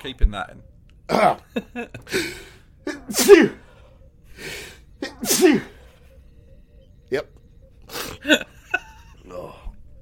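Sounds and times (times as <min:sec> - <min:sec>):
speech: 0:00.0 - 0:03.6, 0:04.4 - 0:05.7, 0:07.1 - 0:07.4, 0:08.2 - 0:08.5
laughter: 0:01.2 - 0:02.6, 0:08.2 - 0:09.6
sneeze: 0:02.9 - 0:03.6, 0:05.0 - 0:05.8.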